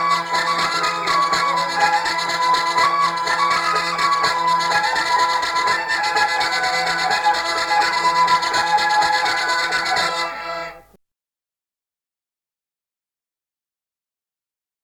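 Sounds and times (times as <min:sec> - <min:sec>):
Auvergne bourrée folk dance music: 0:00.0 - 0:11.0.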